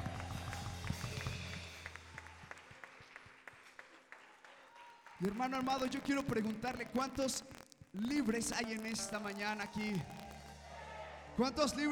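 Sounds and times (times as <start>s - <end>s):
audience clapping hands: 0.0s - 11.9s
speech: 5.2s - 10.2s, 11.4s - 11.9s.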